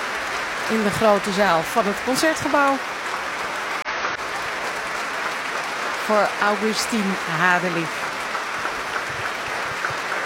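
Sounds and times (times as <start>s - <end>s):
thunderous applause in the main hall of the Concertgebouw: 0.0s - 10.2s
speech: 0.7s - 3.0s, 6.1s - 8.0s.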